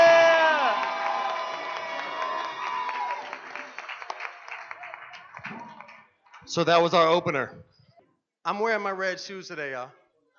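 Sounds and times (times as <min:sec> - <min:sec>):
audience applause: 0:00.0 - 0:06.4
speech: 0:06.5 - 0:07.7, 0:08.4 - 0:10.0.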